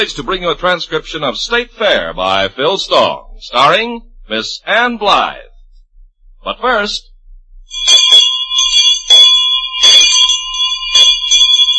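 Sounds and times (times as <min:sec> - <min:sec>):
speech: 0:00.0 - 0:05.5, 0:06.4 - 0:07.1
bell ringing: 0:07.7 - 0:11.7.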